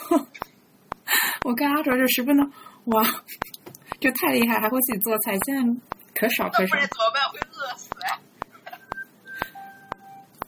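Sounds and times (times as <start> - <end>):
speech: 1.5 - 7.1
phone text message notification tone: 8.8 - 10.3.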